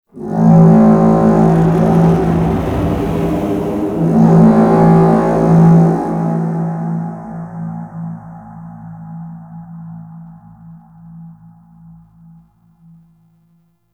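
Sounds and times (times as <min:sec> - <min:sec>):
ship roar: 0:00.1 - 0:08.3.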